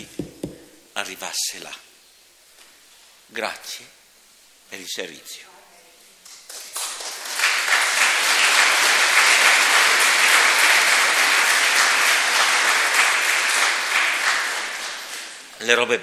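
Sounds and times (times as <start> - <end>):
speech: 1.0 - 1.9, 3.3 - 4.0, 4.7 - 5.5, 15.6 - 16.0
audience applause: 6.4 - 15.6.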